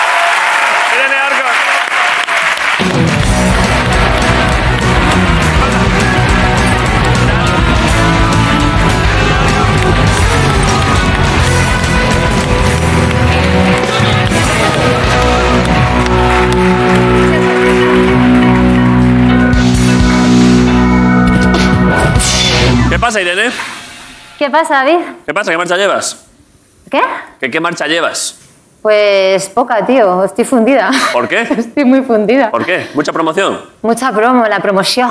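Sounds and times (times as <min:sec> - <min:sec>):
studio audience applauding: 0:00.0 - 0:21.5
driving live band music: 0:02.6 - 0:24.5
speech: 0:23.2 - 0:23.7, 0:24.4 - 0:35.0.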